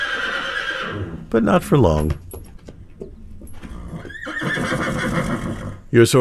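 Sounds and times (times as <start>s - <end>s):
lonely horse in a barn in North Ridgeville neighing: 0.0s - 2.0s, 2.8s - 5.9s
speech: 1.3s - 2.2s, 5.9s - 6.1s.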